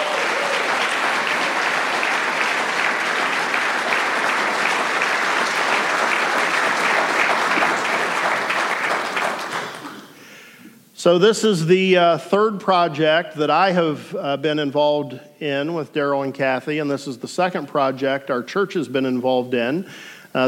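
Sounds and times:
audience applause at a church gathering: 0.0s - 10.0s
speech: 11.1s - 20.4s.

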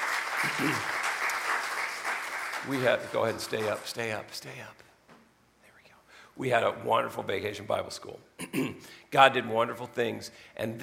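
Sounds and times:
crowd clapping: 0.0s - 4.2s
speech: 0.6s - 0.9s, 2.6s - 4.8s, 6.4s - 10.8s.

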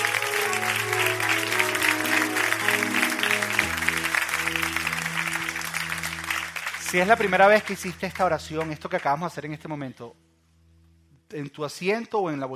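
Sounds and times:
audience applause: 0.0s - 8.8s
speech: 6.9s - 10.2s, 11.3s - 12.5s.

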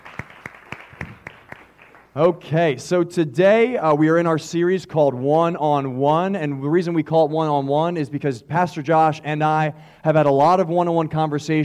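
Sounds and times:
audience clapping: 0.0s - 2.4s
speech: 2.2s - 11.6s.

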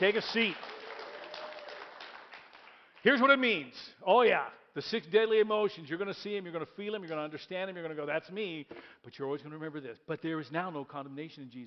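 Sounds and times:
speech: 0.0s - 0.7s, 3.0s - 11.6s
audience applause: 0.0s - 3.0s.

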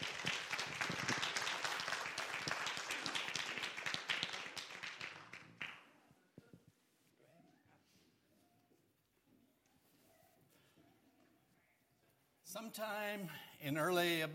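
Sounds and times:
church congregation clapping at a morning service: 0.0s - 6.0s
speech: 12.6s - 14.3s.

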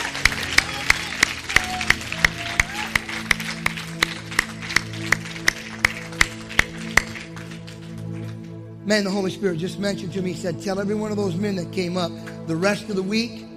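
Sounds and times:
audience applause: 0.0s - 8.5s
speech: 8.9s - 13.4s.

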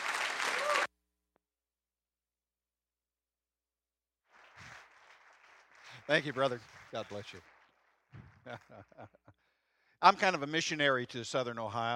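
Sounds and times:
audience applause: 0.0s - 0.9s, 4.3s - 9.1s
speech: 6.1s - 11.9s
laughter: 10.8s - 11.9s.

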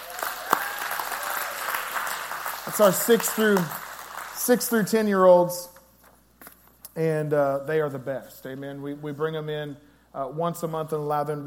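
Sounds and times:
audience applause and hand clapping: 0.0s - 5.0s
speech: 2.7s - 3.8s, 4.4s - 5.7s, 7.0s - 11.4s.

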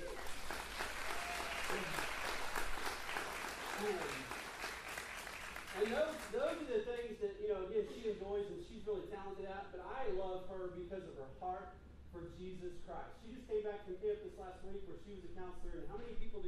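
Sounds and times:
crowd clapping: 0.0s - 6.7s
speech: 3.8s - 4.4s, 5.8s - 16.4s.

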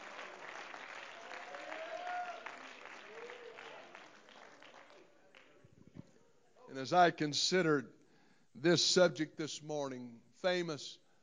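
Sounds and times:
audience clapping: 0.0s - 5.7s
speech: 6.8s - 8.0s, 8.6s - 11.0s.

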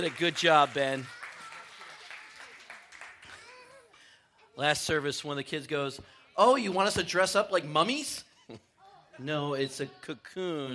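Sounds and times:
speech: 0.0s - 1.2s, 4.6s - 10.7s
audience applause: 0.0s - 3.5s.

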